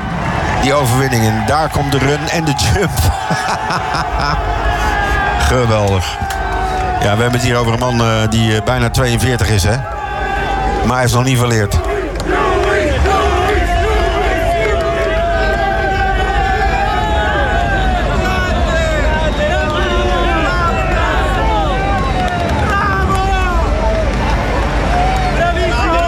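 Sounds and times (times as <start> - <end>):
laughter: 0.0 - 14.7, 20.2 - 25.7
Italian sports crowd cheering at an athletics jumping event: 0.0 - 26.0
speech: 0.6 - 9.9, 10.8 - 12.4.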